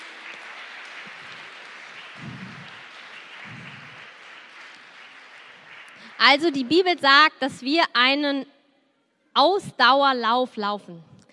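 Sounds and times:
audience applause: 0.0s - 7.0s
speech: 6.2s - 8.5s, 9.4s - 11.1s.

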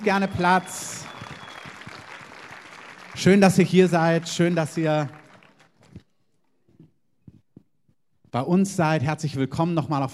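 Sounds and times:
speech: 0.0s - 1.1s, 3.2s - 5.2s, 8.4s - 10.1s
audience applause: 0.0s - 6.0s.

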